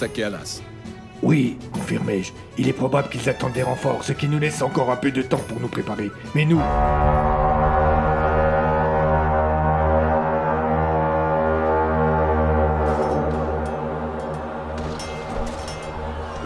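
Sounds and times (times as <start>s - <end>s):
speech: 0.0s - 7.5s
horn blown from the forest: 6.6s - 16.3s.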